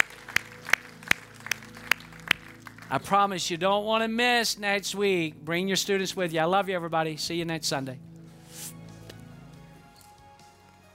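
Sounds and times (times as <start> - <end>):
audience hand clapping: 0.0 - 3.4
speech: 2.9 - 8.1.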